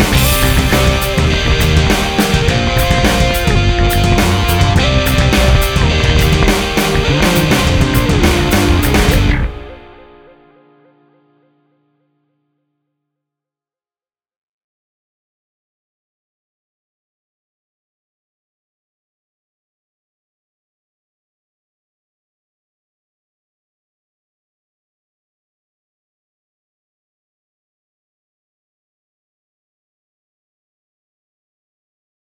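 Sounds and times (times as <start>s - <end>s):
Moog synthesizer: 0.0s - 12.2s.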